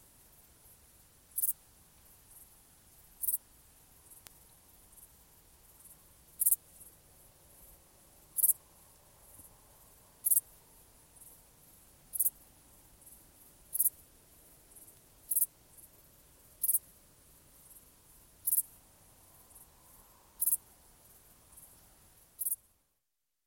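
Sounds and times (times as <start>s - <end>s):
quiet low background hiss: 0.0s - 23.2s
grasshopper stridulation: 1.3s - 3.4s, 5.7s - 6.9s, 8.4s - 8.6s, 9.3s - 10.6s, 11.2s - 12.4s, 13.0s - 15.9s, 16.6s - 16.9s, 17.6s - 18.8s, 19.4s - 21.7s, 22.4s - 22.6s.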